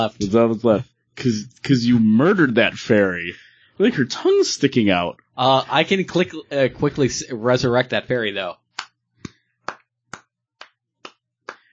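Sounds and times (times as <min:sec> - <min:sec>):
speech: 0:00.0 - 0:08.6
hands clapping: 0:08.8 - 0:11.7.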